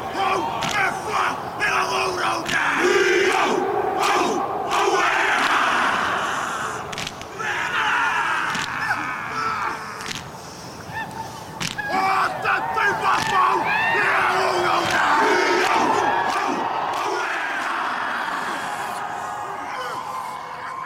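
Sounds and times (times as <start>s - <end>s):
crowd noise: 0.0s - 20.8s
rugby team men chanting and bellowing a haka: 0.0s - 20.8s.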